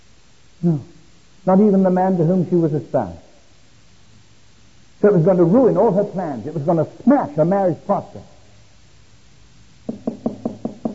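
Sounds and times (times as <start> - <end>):
speech: 0.6 - 3.2, 5.0 - 8.3
knocking on a door: 9.8 - 10.9.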